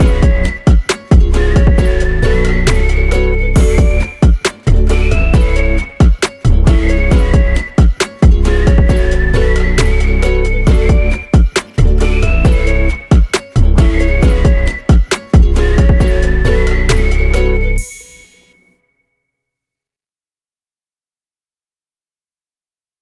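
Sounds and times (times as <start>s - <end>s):
ukulele boom: 0.0s - 18.1s.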